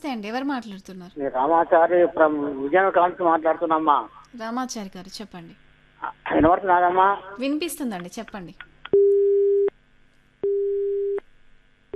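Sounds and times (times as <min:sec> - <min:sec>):
speech: 0:00.0 - 0:08.7
telephone busy tone after a phone-in call is cut off: 0:10.4 - 0:11.2.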